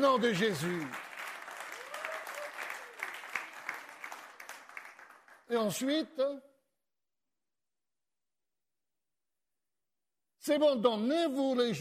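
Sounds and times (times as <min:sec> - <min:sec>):
speech: 0:00.0 - 0:01.0, 0:05.5 - 0:06.5, 0:10.4 - 0:11.7
audience applauding: 0:00.0 - 0:05.8.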